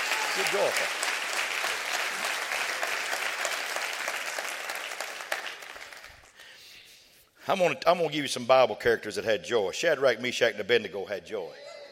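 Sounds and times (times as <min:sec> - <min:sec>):
audience clapping hands: 0:00.0 - 0:06.5
speech: 0:00.4 - 0:01.1, 0:07.5 - 0:11.7.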